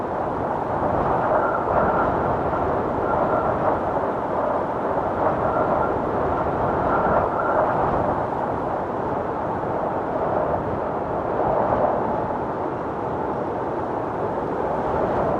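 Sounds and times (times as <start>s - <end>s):
wind storm: 0.0s - 15.3s.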